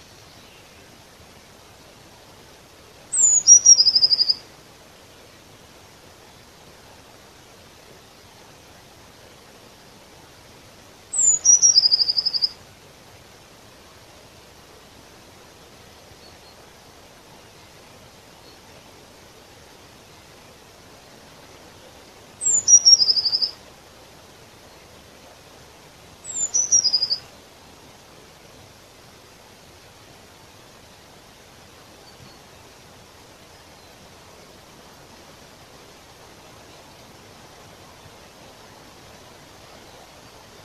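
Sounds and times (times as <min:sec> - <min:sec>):
soft hiss: 0:00.0 - 0:40.6
Eurasian blue tit call: 0:03.2 - 0:04.4, 0:22.4 - 0:23.6, 0:26.3 - 0:27.2.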